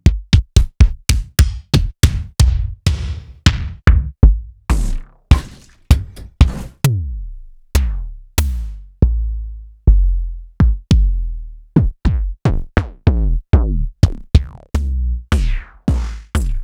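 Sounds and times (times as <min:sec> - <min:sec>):
Roland TD-20 bass drum hits: 0:00.2 - 0:09.4, 0:09.9 - 0:16.6.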